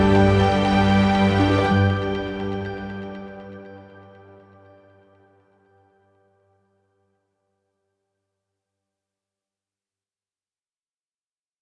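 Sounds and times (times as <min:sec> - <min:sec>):
ambient music: 0:00.0 - 0:06.0.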